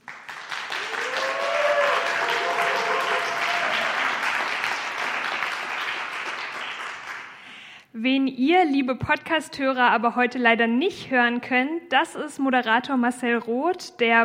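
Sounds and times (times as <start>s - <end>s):
large audience applauding: 0.0s - 7.5s
speech: 8.0s - 14.2s.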